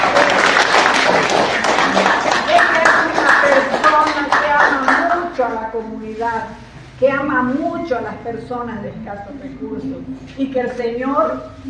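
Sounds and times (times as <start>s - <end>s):
applause: 0.0s - 5.3s
speech: 5.8s - 11.6s.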